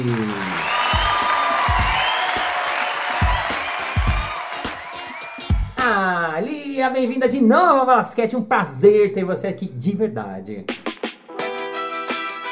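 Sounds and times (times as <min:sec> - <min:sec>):
speech: 0:00.0 - 0:00.5, 0:06.8 - 0:10.9
audience whoops and cheers: 0:00.0 - 0:05.8
live audience applause: 0:00.0 - 0:05.8.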